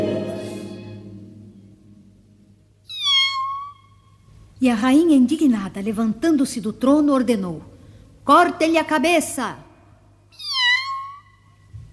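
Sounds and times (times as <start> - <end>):
kitten meowing: 2.9 - 3.9, 10.4 - 11.4
speech: 4.6 - 7.7, 8.3 - 9.6.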